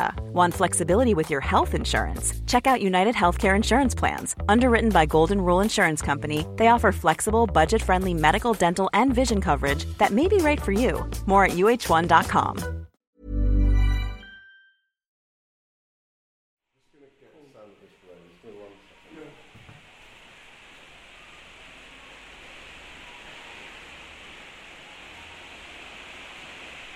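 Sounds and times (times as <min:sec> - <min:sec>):
speech: 0:00.4 - 0:12.8
rain: 0:18.4 - 0:26.9.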